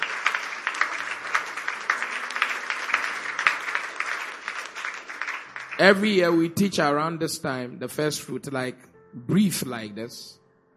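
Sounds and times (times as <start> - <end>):
audience clapping: 0.0 - 6.9
speech: 5.8 - 10.4.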